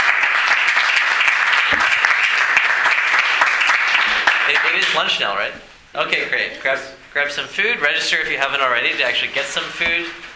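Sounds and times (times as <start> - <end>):
audience applause: 0.0 - 5.2
speech: 4.8 - 10.3.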